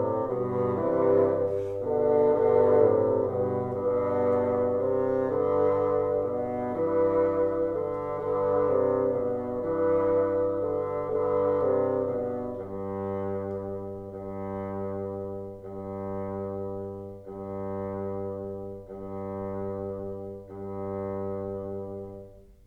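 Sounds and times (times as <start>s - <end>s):
bassoon trio playing: 0.0s - 22.6s.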